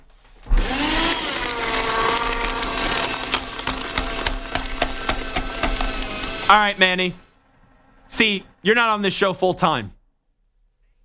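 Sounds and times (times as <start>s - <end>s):
paper shredder shredding: 0.3s - 7.3s
speech: 6.5s - 7.2s, 8.1s - 10.0s.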